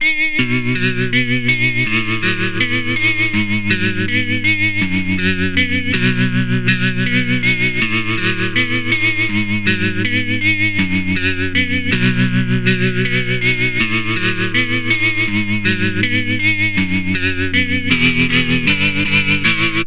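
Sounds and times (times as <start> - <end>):
guitar motif: 0.0 - 19.8.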